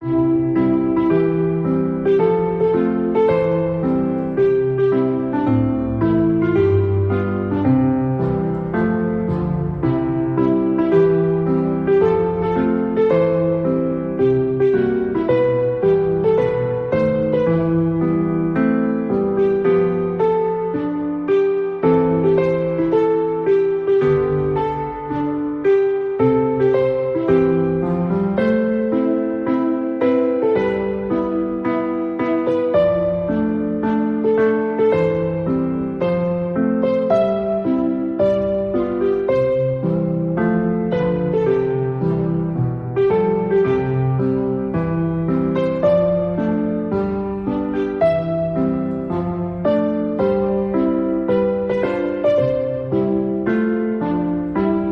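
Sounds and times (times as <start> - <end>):
classical Christmas music: 0.0 - 54.9.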